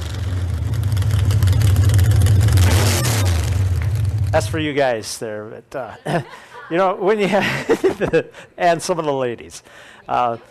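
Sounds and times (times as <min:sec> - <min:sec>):
engine with an oversized cam revving: 0:00.0 - 0:04.7
speech: 0:04.4 - 0:10.4
laughter: 0:05.8 - 0:08.5.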